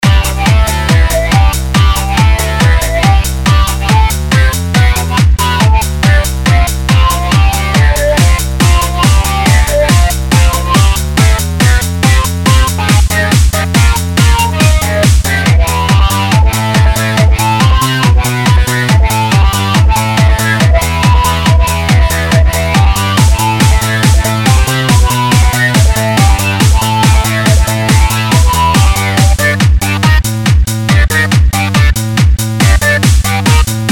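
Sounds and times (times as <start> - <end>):
techno music mix: 0.0 - 33.9.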